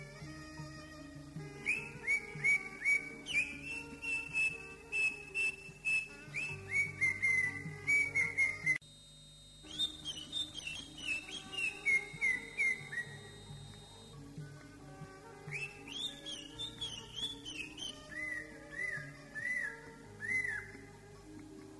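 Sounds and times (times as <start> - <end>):
greater green leafbird song: 1.4 - 8.8, 9.6 - 14.2, 15.5 - 20.9.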